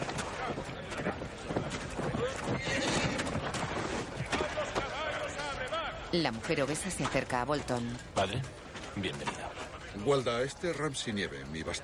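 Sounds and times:
horse hooves: 0.0s - 10.7s
horse neighing: 2.6s - 3.4s
speech: 6.1s - 11.8s.

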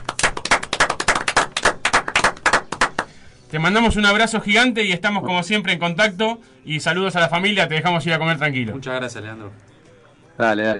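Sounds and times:
small group applauding in studio: 0.0s - 3.2s
speech: 3.5s - 9.7s, 10.4s - 10.7s.

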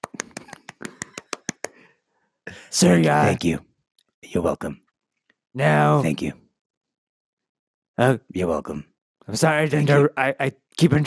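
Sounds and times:
hand clapping: 0.0s - 1.9s
speech: 2.7s - 3.7s, 4.3s - 4.8s, 5.5s - 6.4s, 8.0s - 11.0s.

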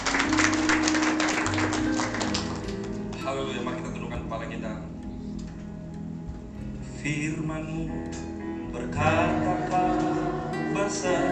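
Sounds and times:
audience applause: 0.0s - 3.9s
low musical hum: 2.6s - 11.3s
speech: 7.0s - 10.0s, 10.8s - 11.3s.

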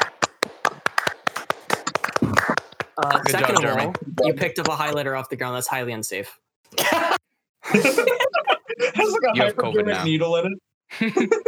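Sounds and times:
hands clapping for a round of applause: 0.0s - 5.2s
laughter: 2.2s - 4.7s, 6.8s - 10.1s, 10.9s - 11.4s
speech: 3.0s - 6.4s, 7.7s - 8.3s, 9.2s - 11.4s.

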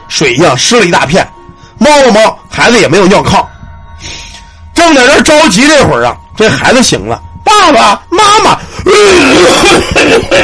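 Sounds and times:
speech: 0.2s - 3.5s, 4.8s - 10.4s
person imitating a strained coughing fit: 9.2s - 10.4s.

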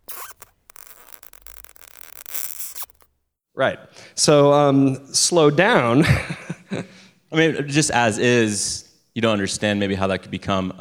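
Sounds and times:
serrated plastic knife rubbed across tire tread: 0.0s - 3.1s
speech: 3.6s - 10.7s.

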